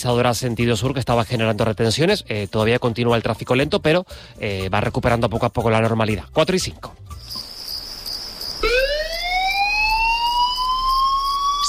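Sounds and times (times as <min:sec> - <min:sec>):
speech: 0:00.0 - 0:07.4
electronic emergency alarm: 0:07.3 - 0:11.6.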